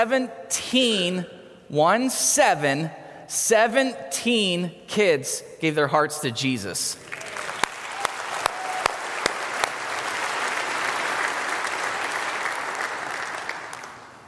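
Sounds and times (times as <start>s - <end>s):
speech: 0.0s - 7.0s
audience giving a weak golf clap: 7.0s - 14.2s.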